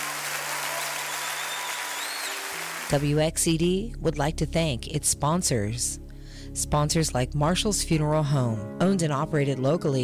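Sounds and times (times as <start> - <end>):
audience clapping: 0.0 - 3.1
speech: 2.9 - 10.0.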